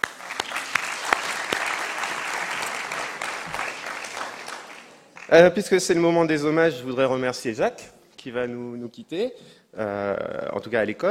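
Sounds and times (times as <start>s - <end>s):
audience applause: 0.0s - 5.3s
speech: 5.3s - 11.0s.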